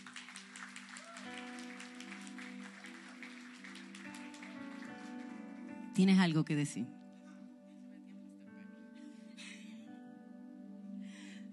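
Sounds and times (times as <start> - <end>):
audience applause: 0.0 - 5.7
speech: 6.0 - 7.0.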